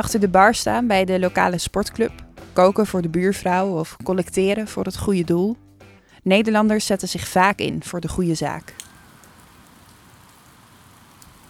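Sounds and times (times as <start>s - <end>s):
speech: 0.0s - 5.6s, 6.2s - 8.8s
drizzling rain: 8.4s - 11.4s.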